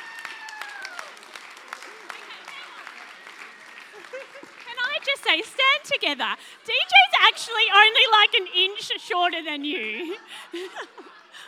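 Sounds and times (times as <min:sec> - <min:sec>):
church congregation at Melbourne Lights Church applauding: 0:00.0 - 0:06.2
laughter: 0:03.7 - 0:11.4
speech: 0:05.3 - 0:11.1.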